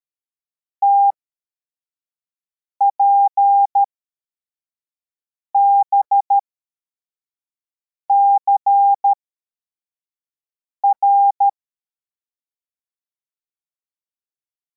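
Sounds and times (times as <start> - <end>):
CW morse code beeps: 2.9 - 3.9, 5.6 - 6.4, 8.1 - 9.2, 10.8 - 11.6.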